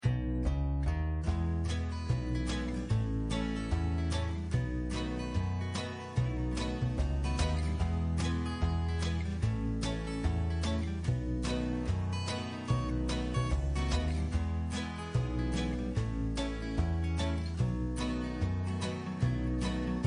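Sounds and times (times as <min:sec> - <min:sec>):
background music: 0:00.0 - 0:20.0.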